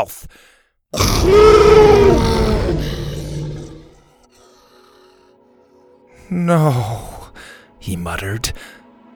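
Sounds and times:
speech: 0.0s - 2.2s, 6.3s - 7.1s, 7.8s - 8.8s
T. rex dinosaur roar: 1.0s - 4.0s.

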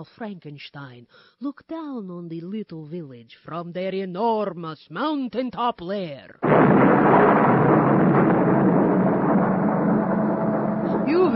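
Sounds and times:
speech: 0.0s - 7.8s
thunderstorm: 6.4s - 11.3s.

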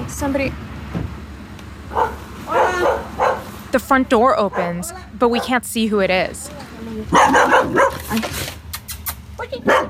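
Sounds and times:
speech: 0.2s - 1.0s, 3.7s - 8.5s, 9.4s - 9.8s
dog barking: 1.9s - 3.5s, 4.5s - 5.6s, 7.1s - 8.2s, 9.6s - 9.8s.

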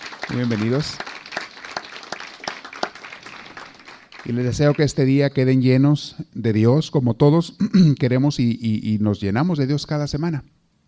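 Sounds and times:
welcoming audience applause: 0.0s - 5.0s
speech: 0.3s - 1.1s, 4.3s - 10.6s.

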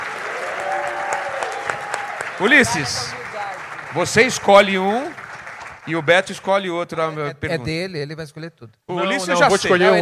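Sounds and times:
audience applause: 0.0s - 6.4s
speech: 2.4s - 3.2s, 3.9s - 5.2s, 5.8s - 10.0s.

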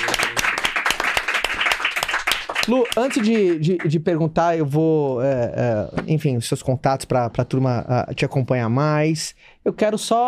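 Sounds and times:
audience applause: 0.0s - 4.0s
speech: 2.7s - 10.2s.

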